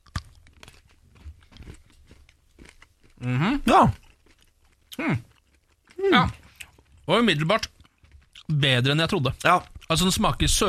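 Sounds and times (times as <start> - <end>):
crunchy bite into chocolate: 0.0 - 6.9
chewing chocolate and mouth noises during a tasting: 0.0 - 10.0
speech: 3.2 - 4.0, 5.0 - 5.3, 6.0 - 6.4, 7.1 - 7.7, 8.5 - 10.6.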